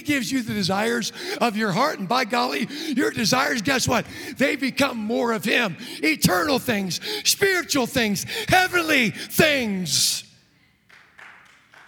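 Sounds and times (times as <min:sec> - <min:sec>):
speech: 0:00.0 - 0:10.3
audience clapping: 0:10.8 - 0:11.8.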